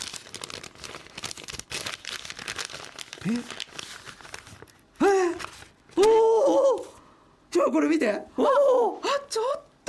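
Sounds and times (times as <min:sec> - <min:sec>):
paper envelope torn open and crinkled: 0:00.0 - 0:06.2
speech: 0:03.2 - 0:03.6, 0:07.7 - 0:09.6.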